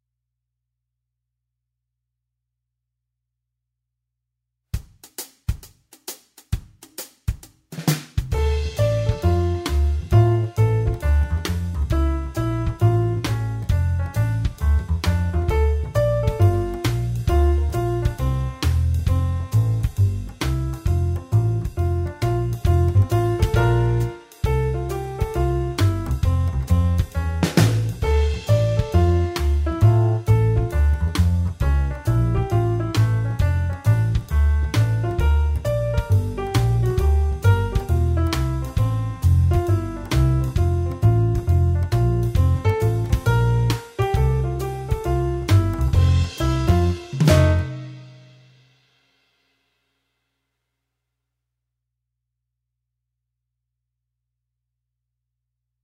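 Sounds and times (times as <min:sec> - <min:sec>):
jazz trombone: 0:08.2 - 0:48.4.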